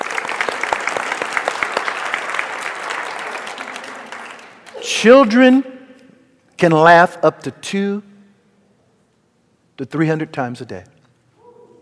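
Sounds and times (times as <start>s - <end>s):
audience applause: 0.0s - 5.0s
speech: 5.0s - 5.7s, 6.6s - 8.1s, 9.8s - 10.9s.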